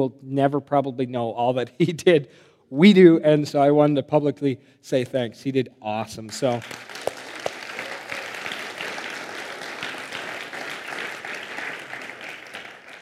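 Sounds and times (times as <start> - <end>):
speech: 0.0 - 7.0
church gathering audience applause: 6.4 - 13.0.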